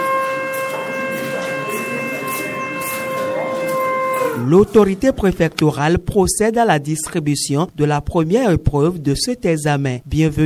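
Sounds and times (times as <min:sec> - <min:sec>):
siren sounding to start exam: 0:00.0 - 0:05.4
speech: 0:04.4 - 0:10.4.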